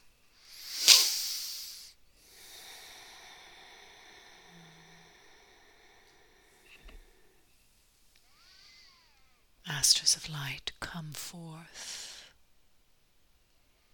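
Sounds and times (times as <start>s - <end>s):
slow deep breath in a guided meditation: 0.3s - 9.2s
speech: 9.8s - 12.0s.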